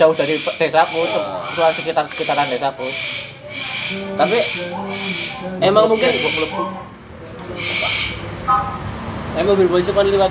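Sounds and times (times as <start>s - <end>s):
speech: 0.0s - 7.9s, 9.4s - 10.3s
bird calling: 0.0s - 8.8s.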